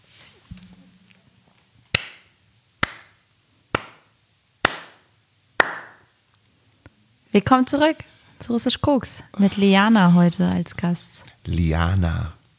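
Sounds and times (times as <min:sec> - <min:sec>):
hand clapping: 0:01.9 - 0:06.1
speech: 0:07.4 - 0:12.4.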